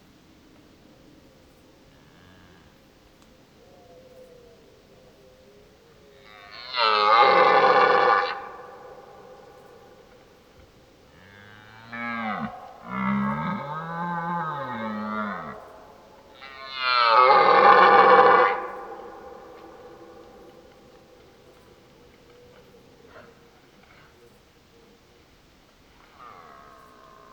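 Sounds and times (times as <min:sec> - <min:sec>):
red deer stag roaring: 0:06.2 - 0:09.3, 0:11.3 - 0:20.8, 0:26.0 - 0:27.3.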